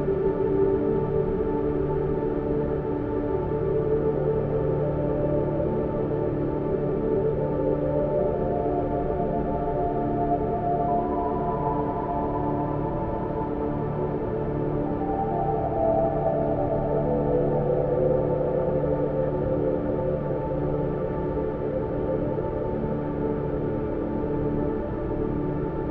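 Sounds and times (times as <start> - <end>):
airy angelic atmosphere: 0.0 - 25.8.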